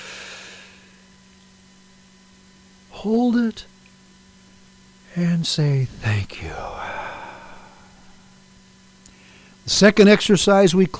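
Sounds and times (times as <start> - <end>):
deep breath drawn in during a guided gratitude breathing exercise: 0.0 - 1.0, 6.6 - 8.4, 9.1 - 9.6
speech: 3.0 - 3.7, 5.2 - 6.9, 9.7 - 10.9.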